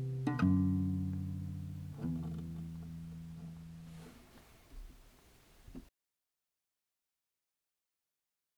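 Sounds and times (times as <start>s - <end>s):
guitar: 0.0s - 4.9s.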